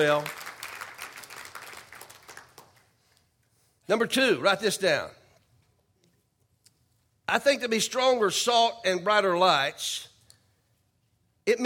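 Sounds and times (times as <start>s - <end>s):
speech: 0.0s - 0.4s, 3.9s - 5.2s, 7.3s - 10.1s, 11.4s - 11.6s
audience hand clapping: 0.0s - 3.1s.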